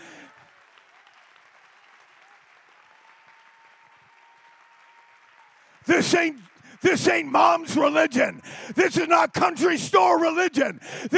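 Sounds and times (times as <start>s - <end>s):
audience applauding: 0.0s - 8.8s
speech: 5.8s - 11.1s.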